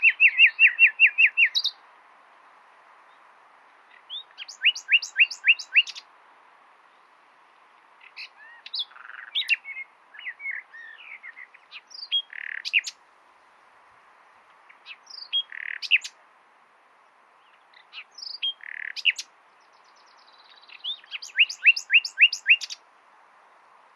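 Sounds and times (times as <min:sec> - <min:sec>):
common nightingale song: 0:00.0 - 0:23.9.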